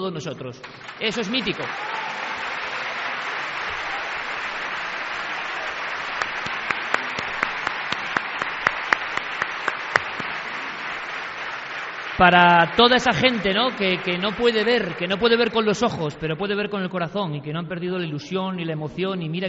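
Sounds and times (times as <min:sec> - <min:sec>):
speech: 0:00.0 - 0:02.2, 0:12.2 - 0:19.4
sharper louder individual claps: 0:00.6 - 0:15.6
steady crowd applause: 0:00.6 - 0:16.2.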